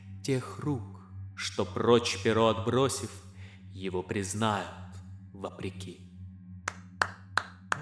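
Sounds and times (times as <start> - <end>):
speech: 0.2 - 4.8, 5.4 - 6.1
person clapping: 6.7 - 7.8.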